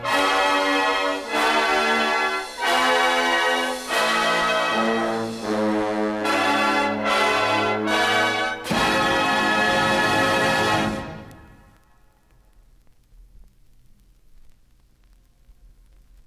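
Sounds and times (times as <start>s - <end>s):
antiphonal fanfare: 0.0s - 11.7s.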